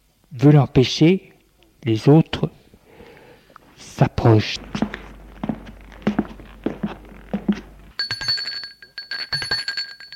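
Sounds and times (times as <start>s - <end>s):
speech: 0.3s - 2.5s, 4.0s - 4.7s
doorbell ringing: 7.5s - 10.1s.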